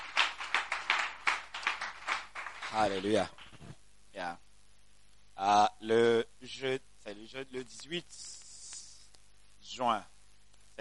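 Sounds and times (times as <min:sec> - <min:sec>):
church congregation clapping along in a steady beat: 0:00.0 - 0:03.7
speech: 0:02.7 - 0:04.4, 0:05.4 - 0:08.4, 0:09.7 - 0:10.1.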